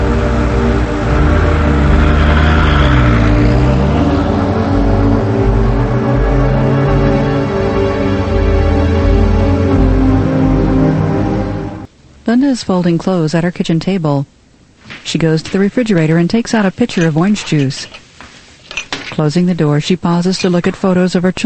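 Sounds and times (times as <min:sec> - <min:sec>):
car engine droning: 0:00.0 - 0:11.9
speech: 0:12.3 - 0:14.4, 0:15.0 - 0:18.0, 0:19.2 - 0:21.4.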